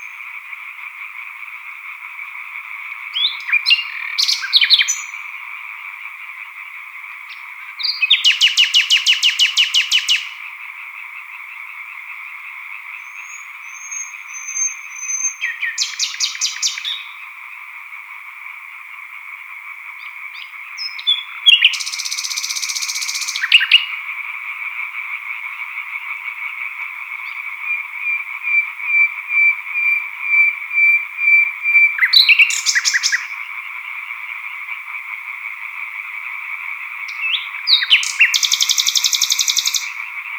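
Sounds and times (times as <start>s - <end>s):
solo nightingale singing: 0.0s - 0.3s, 3.1s - 5.4s, 7.3s - 10.4s, 12.9s - 17.2s, 20.0s - 24.0s, 27.2s - 33.6s, 37.0s - 40.3s
chorus of green tree frogs: 0.0s - 40.3s.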